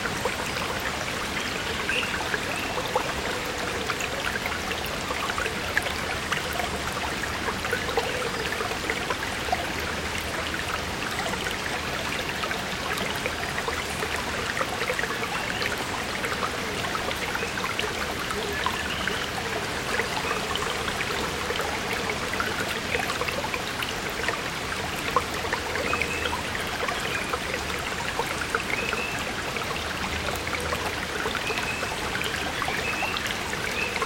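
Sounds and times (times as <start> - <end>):
stream atmosphere: 0.0 - 34.0.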